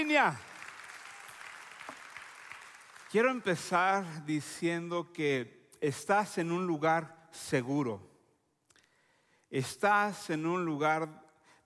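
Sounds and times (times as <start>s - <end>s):
speech: 0.0s - 0.5s, 3.1s - 8.1s, 9.5s - 11.2s
audience applause: 0.0s - 3.5s.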